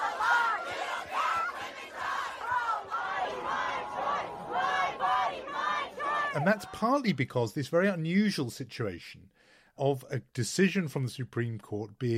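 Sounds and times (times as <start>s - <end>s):
protest crowd shouting: 0.0s - 7.2s
speech: 6.3s - 12.1s.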